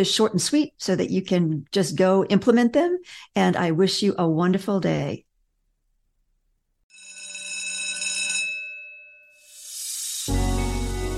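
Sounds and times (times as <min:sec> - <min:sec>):
speech: 0:00.0 - 0:05.2
bell ringing: 0:06.9 - 0:10.4
bright hiss: 0:09.4 - 0:10.8.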